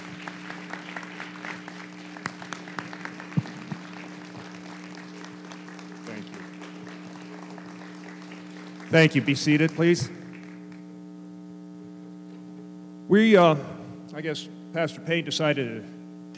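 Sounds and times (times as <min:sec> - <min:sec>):
church congregation clapping: 0:00.0 - 0:11.0
speech: 0:08.9 - 0:10.2, 0:13.2 - 0:16.3.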